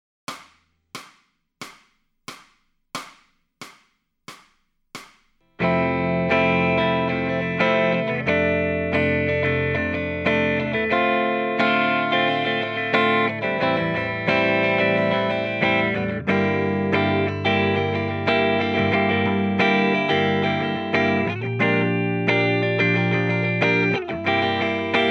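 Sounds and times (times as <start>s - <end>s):
electric guitar lead backing track: 5.6s - 25.0s.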